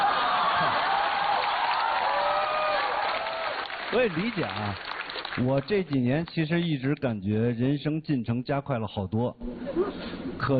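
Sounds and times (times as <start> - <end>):
warm audience applause: 0.0 - 6.1
speech: 3.9 - 10.5.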